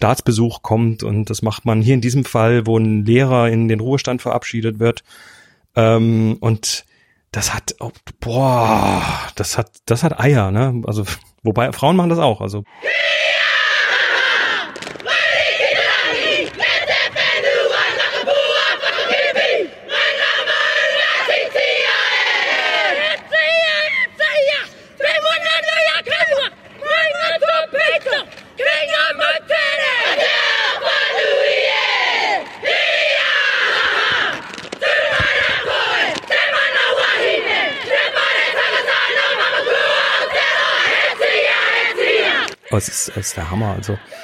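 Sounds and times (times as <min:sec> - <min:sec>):
speech: 0:00.0 - 0:13.3, 0:42.8 - 0:44.2
group performing a Māori haka war chant: 0:12.7 - 0:44.2.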